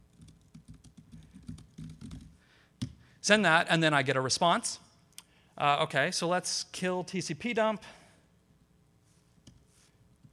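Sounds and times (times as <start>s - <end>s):
low hum: 0.0s - 10.3s
typing on a computer keyboard into an OpenSSL connection in a terminal: 0.1s - 2.4s
speech: 3.2s - 4.8s, 5.6s - 8.0s.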